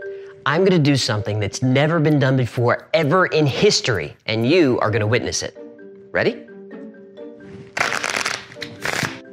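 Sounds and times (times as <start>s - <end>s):
speech: 0.5s - 6.5s
deck of playing cards being shuffled: 7.6s - 9.2s.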